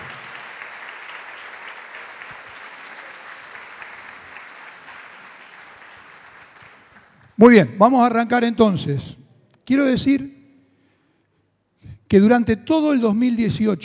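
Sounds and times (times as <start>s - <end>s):
audience applause: 0.0s - 7.4s
speech: 7.4s - 10.4s, 12.1s - 13.8s.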